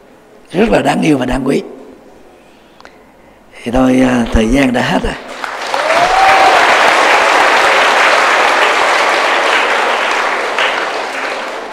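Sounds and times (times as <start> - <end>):
speech: 0.5 - 1.8, 3.6 - 5.3
enthusiastic audience applause: 5.3 - 11.7.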